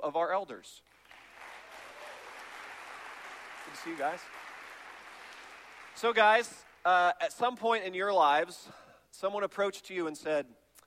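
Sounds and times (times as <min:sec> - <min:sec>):
speech: 0:00.0 - 0:01.0, 0:03.7 - 0:04.4, 0:06.0 - 0:10.6
audience applause greeting two elders welcomed onto a stage: 0:00.9 - 0:06.8.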